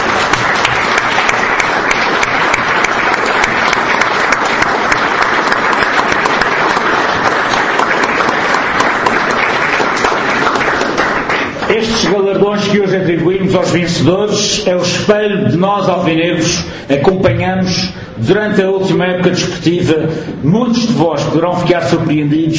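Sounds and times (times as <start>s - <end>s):
applause from a crowd of many people: 0.0s - 12.4s
speech: 12.8s - 22.5s.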